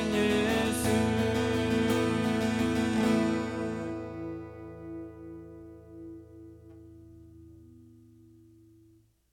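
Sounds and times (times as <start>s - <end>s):
worship guitar: 0.0s - 9.1s.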